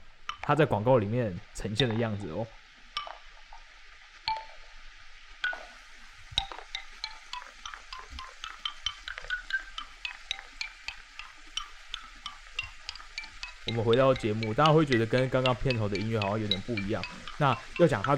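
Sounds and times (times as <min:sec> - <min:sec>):
speech: 0:00.5 - 0:02.6, 0:13.7 - 0:18.1
hard tapping of a wooden xylophone: 0:01.8 - 0:02.2, 0:03.0 - 0:03.2, 0:04.3 - 0:04.6, 0:05.4 - 0:05.8, 0:06.4 - 0:18.1.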